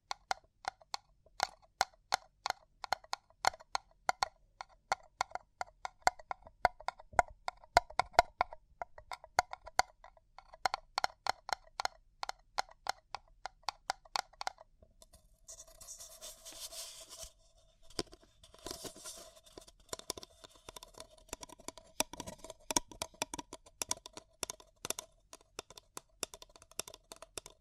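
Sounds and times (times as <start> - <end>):
tapping on paper cup: 0.0 - 14.6, 17.9 - 27.6
crinkling and rustling: 15.5 - 22.8.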